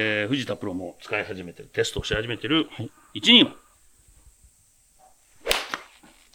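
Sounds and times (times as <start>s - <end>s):
speech: 0.0s - 3.6s
one-piece cast golf club of high-rebound material hitting a ball: 5.4s - 6.0s.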